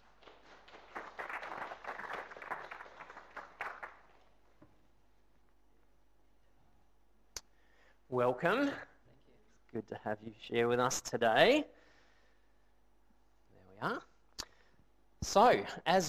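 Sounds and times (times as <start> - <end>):
audience applause welcoming people at a gathering: 0.0 - 4.3
speech: 8.1 - 8.9, 9.7 - 11.8, 13.8 - 14.1, 15.2 - 16.0.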